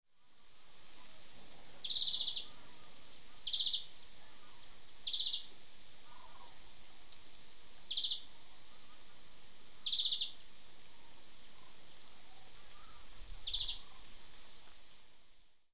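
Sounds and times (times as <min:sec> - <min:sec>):
Chloris chloris: 0:01.8 - 0:06.6, 0:07.9 - 0:09.2, 0:09.8 - 0:10.4, 0:11.6 - 0:14.1.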